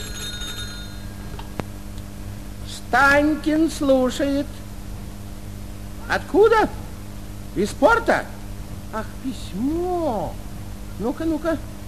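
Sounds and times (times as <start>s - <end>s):
telephone ringing: 0.0s - 1.4s
speech: 2.9s - 4.6s, 6.1s - 6.8s, 7.6s - 10.4s, 11.0s - 11.7s.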